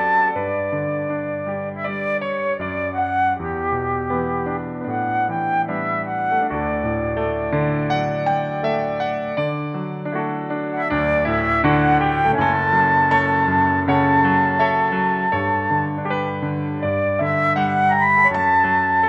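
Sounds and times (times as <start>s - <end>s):
flute: 0.0s - 19.0s
piano: 0.0s - 19.0s.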